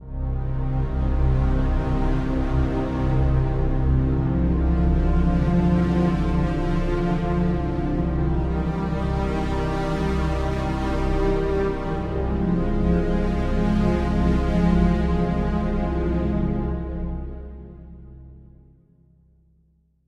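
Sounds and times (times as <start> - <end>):
string music: 0.0 - 18.4.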